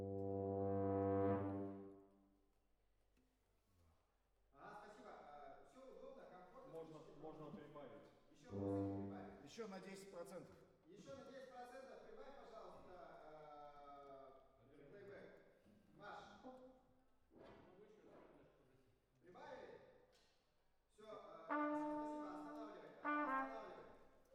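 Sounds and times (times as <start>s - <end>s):
horns playing: 0.0s - 1.9s, 8.5s - 9.4s, 21.5s - 24.3s.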